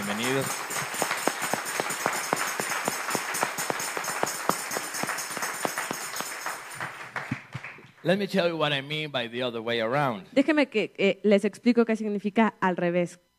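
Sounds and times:
audience applause: 0.0 - 7.9
speech: 0.3 - 0.8, 8.0 - 13.3.

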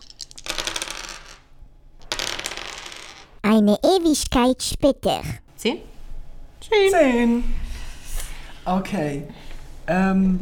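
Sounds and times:
three dice rattling onto a hard surface: 0.0 - 3.4
speech: 3.6 - 5.9, 6.7 - 7.6, 8.7 - 10.4.

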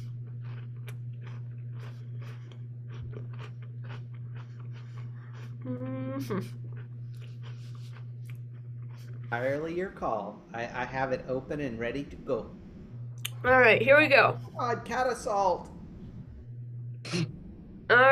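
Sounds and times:
person chewing and crunching a cookie: 0.0 - 10.1
steady low hum: 0.0 - 18.1
speech: 5.6 - 6.6, 9.3 - 12.6, 13.4 - 15.7.

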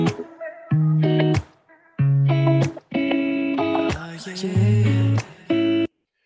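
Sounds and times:
reverb-soaked vocal ad-lib with chorus effect: 0.0 - 2.3, 3.6 - 6.2
effects-heavy guitar riff: 0.0 - 5.9.

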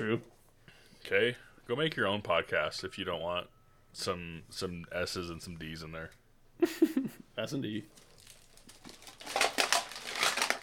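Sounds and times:
speech: 0.0 - 0.4, 1.0 - 8.1
overflowing garbage can crunching: 8.0 - 10.6.

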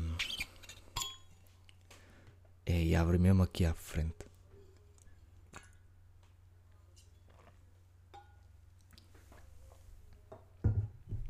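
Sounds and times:
glass clinking while getting a drink of water: 0.6 - 1.4, 8.1 - 8.5
speech: 2.7 - 4.3.

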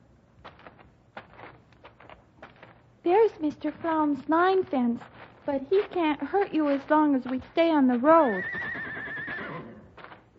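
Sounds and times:
speech: 3.0 - 8.6
horse neighing: 8.2 - 9.9.

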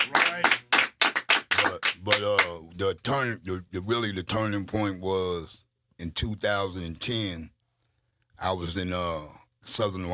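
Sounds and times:
hand clapping: 0.0 - 2.6
speech: 2.1 - 7.5, 8.4 - 10.1.

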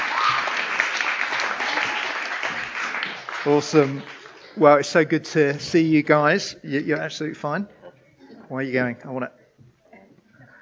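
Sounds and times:
audience applause: 0.0 - 4.7
speech: 3.4 - 7.8, 8.5 - 9.4.

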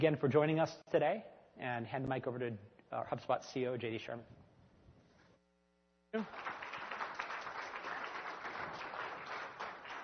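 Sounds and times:
speech: 0.0 - 4.4, 6.1 - 6.6
audience applause: 6.2 - 10.0.

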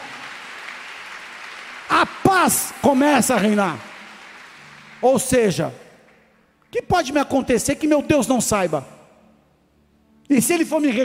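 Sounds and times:
audience applauding: 0.0 - 6.5
speech: 2.4 - 3.9, 5.0 - 5.8, 6.7 - 9.0, 10.3 - 11.0.

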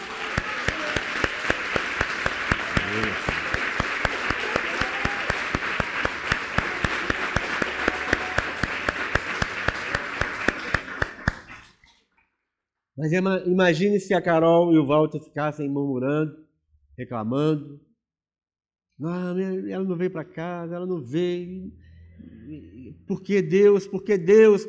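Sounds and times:
large audience applauding: 0.0 - 11.8
speech: 13.0 - 16.4, 17.0 - 17.9, 19.0 - 24.6.

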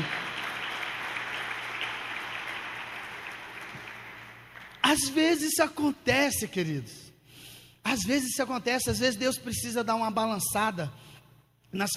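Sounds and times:
audience applause: 0.0 - 4.8
speech: 4.9 - 7.0, 7.8 - 11.1, 11.7 - 11.9.

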